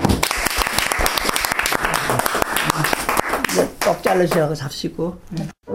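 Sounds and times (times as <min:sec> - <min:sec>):
audience applause: 0:00.0 - 0:04.0
speech: 0:03.9 - 0:05.6.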